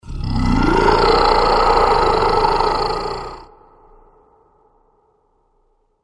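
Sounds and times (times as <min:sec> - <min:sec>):
dragon monster sound effects: 0:00.0 - 0:03.5.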